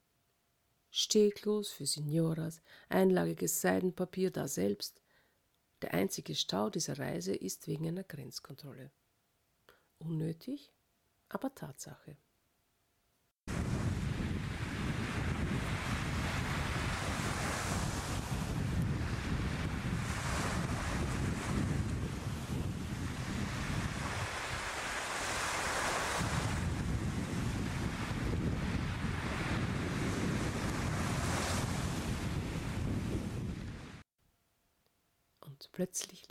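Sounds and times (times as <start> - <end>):
speech: 1.0 - 5.0, 5.8 - 9.0, 10.0 - 12.2, 35.8 - 36.2
sea waves washing onto a beach shore: 13.5 - 34.0
wind buffeting: 13.5 - 34.0.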